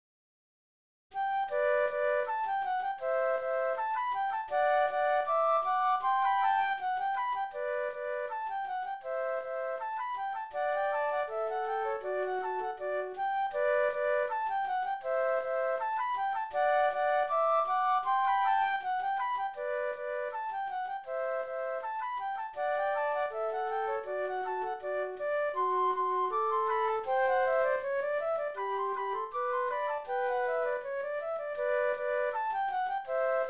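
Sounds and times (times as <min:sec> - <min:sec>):
flute duet: 0:01.2 - 0:33.4.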